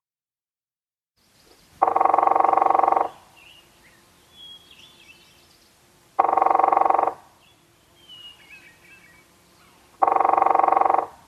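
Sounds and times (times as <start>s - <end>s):
northern flicker drumming on metal: 1.8s - 3.2s, 6.2s - 7.2s, 10.0s - 11.2s.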